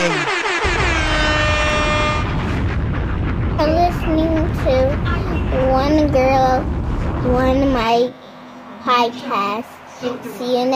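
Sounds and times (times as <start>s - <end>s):
air horn blast: 0.0s - 2.6s
dense rumbling wash of noise: 0.0s - 8.1s
speech: 6.6s - 8.2s, 8.9s - 10.7s.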